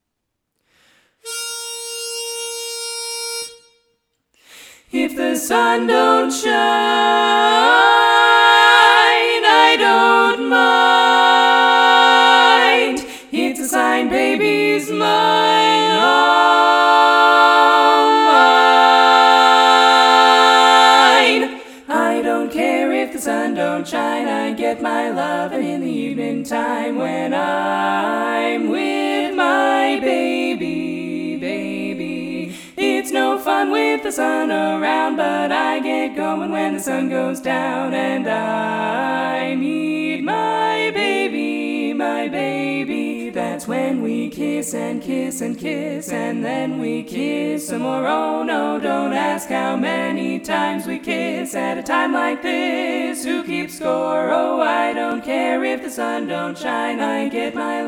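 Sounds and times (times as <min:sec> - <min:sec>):
chorus singing without tenor: 0:04.8 - 0:57.8.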